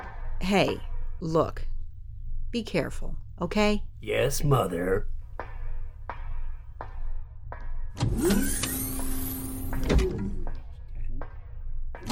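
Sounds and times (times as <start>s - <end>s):
speech: 0.4s - 1.7s, 2.5s - 5.2s, 8.0s - 8.7s, 9.8s - 10.3s
motorized storage ramp opening: 8.0s - 10.3s.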